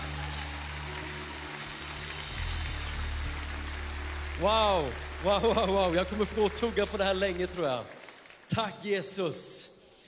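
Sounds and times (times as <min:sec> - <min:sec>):
audience applause: 0:00.0 - 0:08.7
speech: 0:04.4 - 0:09.7.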